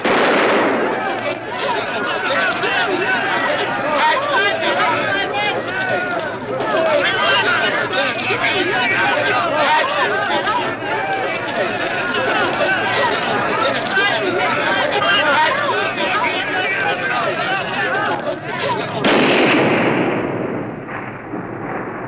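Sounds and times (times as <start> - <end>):
gunshots during assassination attempt: 0.0 - 1.8, 19.0 - 22.0
laughter: 0.0 - 19.2.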